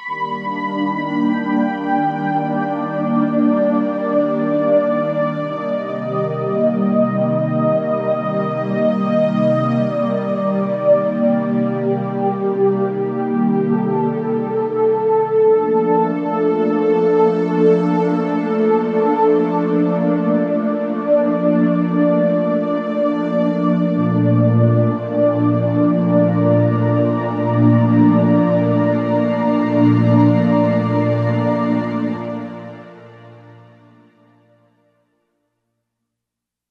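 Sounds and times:
synth horn pad factory patch: 0:00.0 - 0:34.2.

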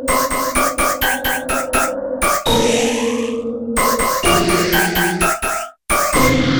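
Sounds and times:
gated sound effect: 0:00.1 - 0:02.6, 0:03.8 - 0:06.4.

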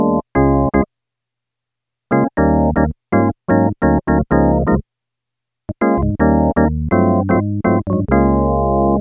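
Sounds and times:
electric organ on a Yamaha DX7: 0:00.0 - 0:00.9, 0:02.1 - 0:04.8, 0:05.7 - 0:09.0.

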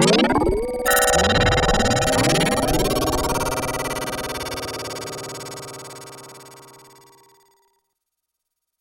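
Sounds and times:
pulse modulated synth sound effect on a Korg DW-8000: 0:00.9 - 0:07.6.

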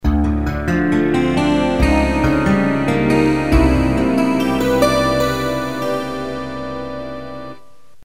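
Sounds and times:
guitar: 0:00.0 - 0:07.7.

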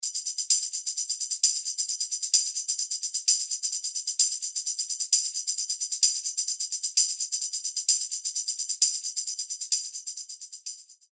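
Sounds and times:
tambourine: 0:00.0 - 0:11.1.

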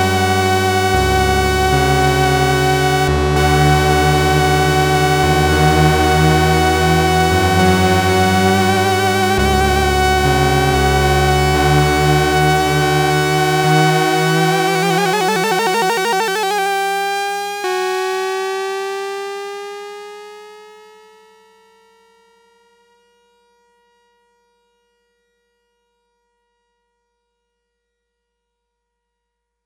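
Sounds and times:
ascending release on a Sequential Circuits Six-Trak synthesizer: 0:00.0 - 0:18.4.

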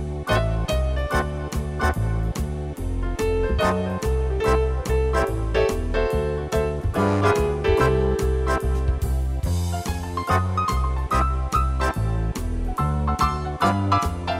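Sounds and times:
big band orchestra playing swing and jazz: 0:00.0 - 0:14.3.

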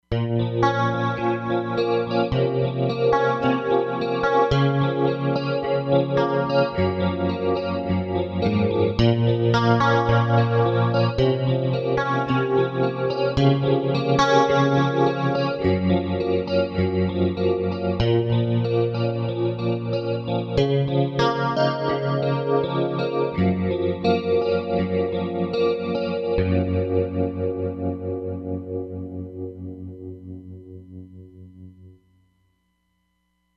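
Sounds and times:
two Fender Stratocaster electric guitars: 0:00.0 - 0:32.0.

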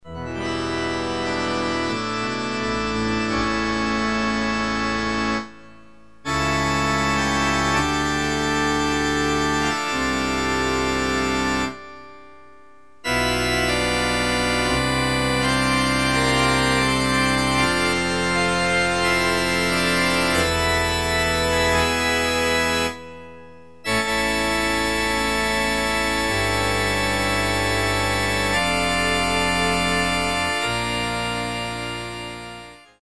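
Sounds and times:
organ: 0:00.0 - 0:32.9.

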